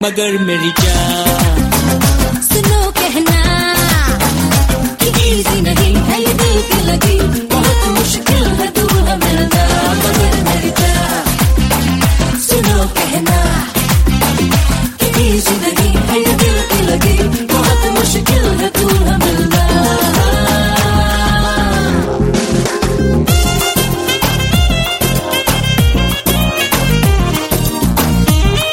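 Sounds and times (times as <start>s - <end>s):
romantic Bollywood song ringtone: 0.0s - 28.7s.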